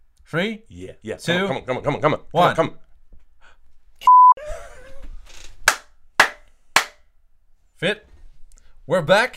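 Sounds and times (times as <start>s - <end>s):
speech: 0.3s - 2.8s, 7.8s - 8.1s, 8.9s - 9.3s
sharp hand claps for audio sync: 5.6s - 7.1s.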